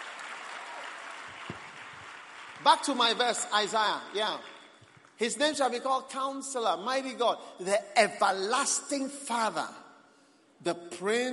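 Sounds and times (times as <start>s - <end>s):
single slightly louder clap: 0.0s - 2.7s
steady crowd applause: 0.0s - 5.2s
speech: 2.6s - 4.5s, 5.2s - 9.8s, 10.6s - 11.3s.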